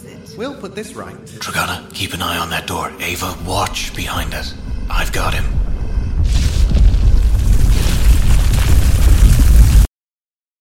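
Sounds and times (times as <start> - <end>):
speech: 0.4 - 5.6
deep rumbling tremor shaking an underground chamber: 3.2 - 9.9
crackling rattling debris: 3.3 - 9.8.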